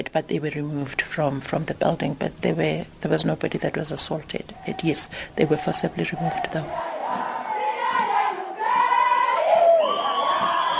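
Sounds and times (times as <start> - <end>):
speech: 0.0 - 7.2
protesting crowd: 4.5 - 10.7.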